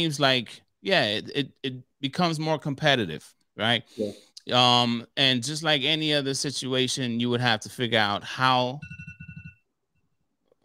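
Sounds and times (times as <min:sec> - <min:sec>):
speech: 0:00.0 - 0:09.0
electronic alarm ringing: 0:08.8 - 0:09.6.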